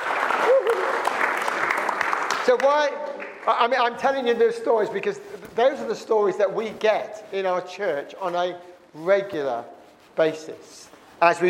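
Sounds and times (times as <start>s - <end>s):
audience applause: 0.0s - 3.5s
speech: 2.4s - 11.4s.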